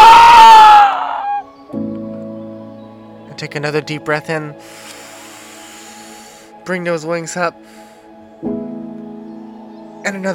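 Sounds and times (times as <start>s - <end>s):
several people imitating a hawk's cry: 0.0s - 1.5s
speech: 3.5s - 4.9s, 6.7s - 7.8s, 10.1s - 10.3s.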